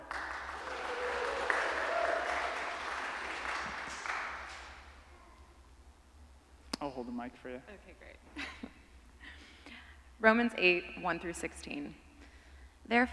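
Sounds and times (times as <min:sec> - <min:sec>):
laughter: 0:00.0 - 0:05.4
audience applause: 0:00.0 - 0:05.5
speech: 0:06.9 - 0:08.6, 0:10.2 - 0:12.0, 0:12.9 - 0:13.1.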